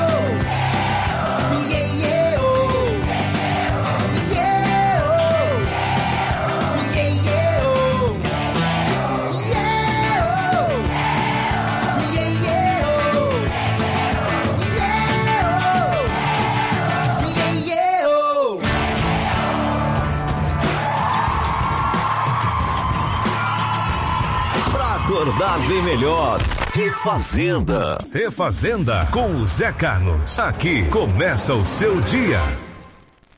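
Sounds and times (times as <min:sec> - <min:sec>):
crowd cheering: 0:00.1 - 0:17.6, 0:18.6 - 0:26.4
speech: 0:26.9 - 0:32.6.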